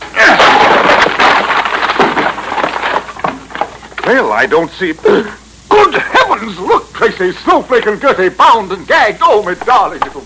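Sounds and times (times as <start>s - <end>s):
door being forced open: 0.0s - 4.3s
rough crackling and rattling debris: 0.0s - 4.5s
speech: 4.1s - 10.2s.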